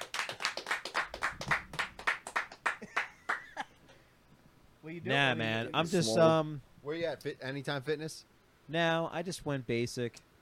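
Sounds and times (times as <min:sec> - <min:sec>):
small group clapping: 0:00.0 - 0:03.7
speech: 0:04.9 - 0:10.3.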